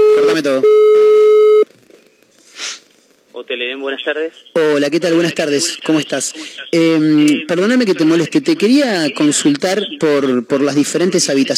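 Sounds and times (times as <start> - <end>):
telephone ringback tone of an outgoing call: 0.0 - 1.6
quiet telephone line noise and soft hiss: 0.0 - 11.5
speech: 0.4 - 0.8, 3.4 - 11.5.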